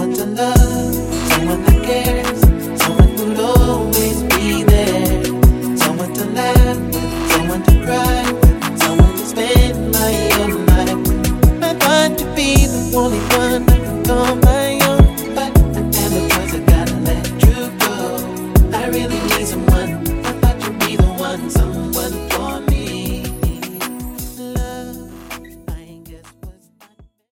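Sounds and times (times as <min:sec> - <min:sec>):
turntable scratching: 0:00.6 - 0:24.3.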